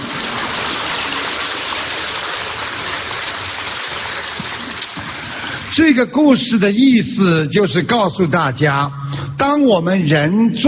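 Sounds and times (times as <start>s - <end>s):
audience applause: 0.0s - 5.4s
speech: 5.8s - 10.6s.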